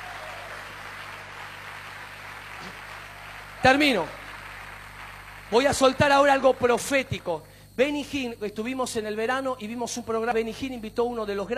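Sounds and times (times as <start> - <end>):
crowd clapping: 0.0 - 7.4
faint low hum: 0.0 - 11.5
speech: 3.6 - 4.2, 5.5 - 11.5.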